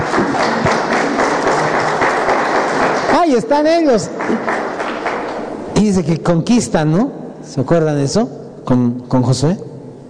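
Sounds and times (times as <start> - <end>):
crowd applause: 0.0 - 5.6
speech: 3.2 - 4.7, 5.8 - 9.7.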